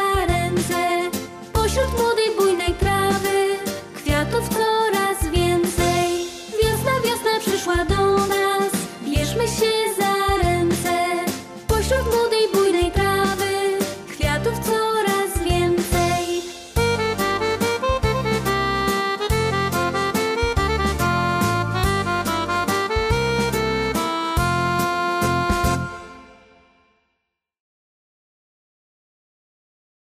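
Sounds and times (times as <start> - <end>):
song: 0.0 - 26.9.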